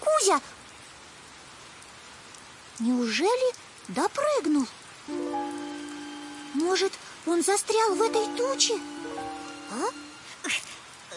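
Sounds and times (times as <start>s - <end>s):
light rain falling: 0.0s - 11.1s
speech: 0.2s - 0.6s, 2.8s - 5.4s, 6.5s - 9.0s, 9.7s - 11.1s.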